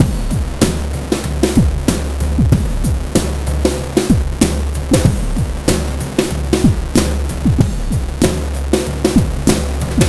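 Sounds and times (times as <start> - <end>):
breakbeat drums: 0.0 - 10.0.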